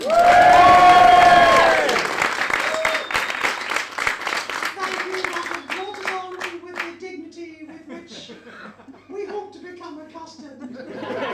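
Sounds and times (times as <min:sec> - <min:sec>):
audience applause and cheering: 0:00.0 - 0:06.9
laughter: 0:07.7 - 0:09.5, 0:10.6 - 0:11.3.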